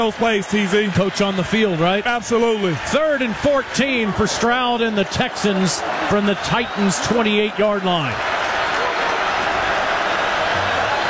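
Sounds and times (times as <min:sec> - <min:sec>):
speech: 0:00.0 - 0:08.4
stadium crowd roaring: 0:00.0 - 0:11.0.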